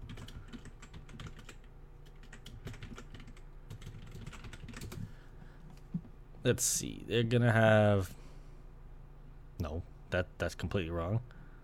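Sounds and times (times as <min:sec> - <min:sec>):
typing on a computer keyboard: 0:00.0 - 0:05.1
speech: 0:06.4 - 0:08.2, 0:10.1 - 0:11.4.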